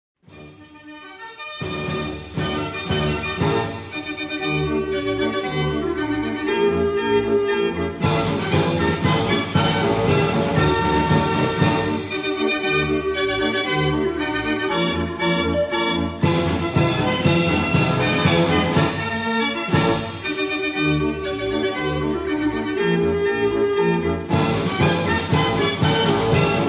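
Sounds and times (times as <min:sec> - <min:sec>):
Dutch street barrel organ playing: 0:01.6 - 0:26.6.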